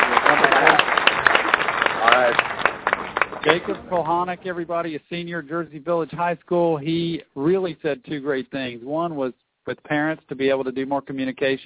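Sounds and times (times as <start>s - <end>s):
voices cheering: 0.0s - 4.4s
crowd applause sound effect: 0.0s - 4.7s
speech: 3.4s - 11.6s.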